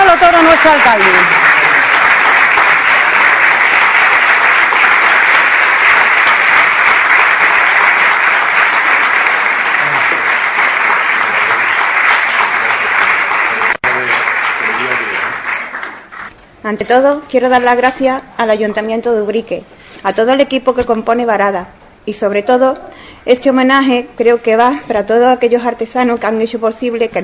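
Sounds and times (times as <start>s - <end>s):
audience applause at a local award ceremony honouring a leather goods firm: 0.0s - 16.3s
speech: 0.6s - 1.4s, 16.7s - 27.2s.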